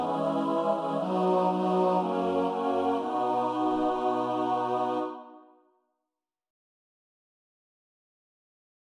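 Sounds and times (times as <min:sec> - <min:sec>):
choral music tutti: 0:00.0 - 0:05.6.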